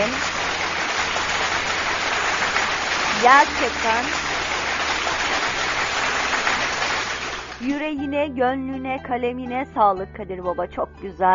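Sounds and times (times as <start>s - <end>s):
big round of applause: 0.0s - 7.7s
speech: 3.2s - 4.2s, 7.6s - 11.3s.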